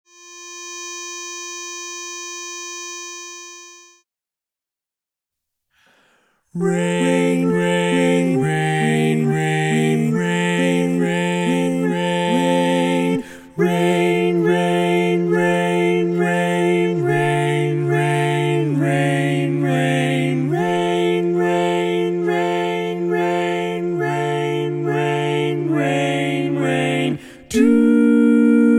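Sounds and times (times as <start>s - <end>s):
chorus music without lead: 6.6s - 28.3s.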